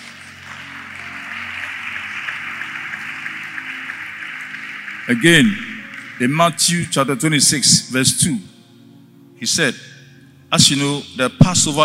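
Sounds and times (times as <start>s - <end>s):
audience applause: 0.0s - 7.1s
low sustained musical tones: 0.0s - 11.8s
speech: 5.1s - 8.5s, 9.4s - 9.9s, 10.5s - 11.8s.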